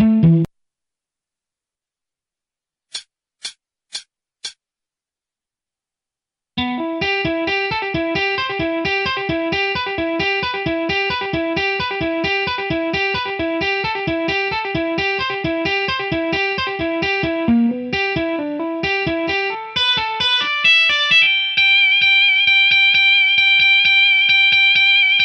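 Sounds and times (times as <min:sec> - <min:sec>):
instrumental solo: 0:06.6 - 0:25.2.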